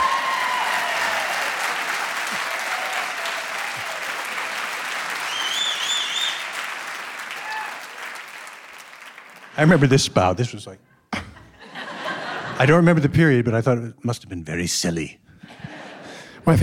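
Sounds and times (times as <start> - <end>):
audience applause: 0.0 - 10.0
speech: 9.6 - 10.9, 12.6 - 15.6, 16.4 - 16.6
laughter: 11.2 - 12.8, 15.4 - 16.3.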